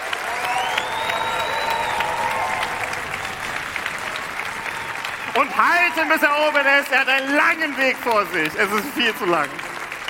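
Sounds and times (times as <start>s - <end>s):
loud applause from a large audience: 0.0s - 10.0s
whistles: 0.3s - 5.5s
speech: 5.4s - 9.6s.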